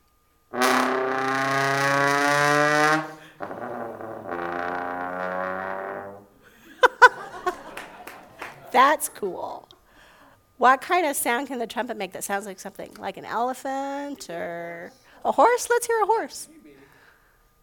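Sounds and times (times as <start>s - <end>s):
trombone imitating a Batmobile engine: 0.5s - 6.4s
laughter: 6.6s - 9.4s
speech: 8.7s - 9.6s, 10.6s - 16.5s.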